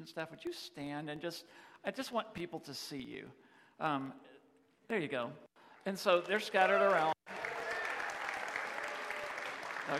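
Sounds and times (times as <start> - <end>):
speech: 0.0 - 4.3, 4.9 - 7.4
audience applause: 6.1 - 9.9.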